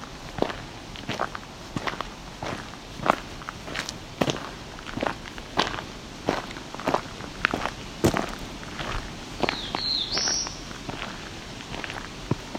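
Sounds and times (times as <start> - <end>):
crunching footsteps: 0.0 - 12.5
black-throated blue warbler buzzy call: 9.4 - 10.7.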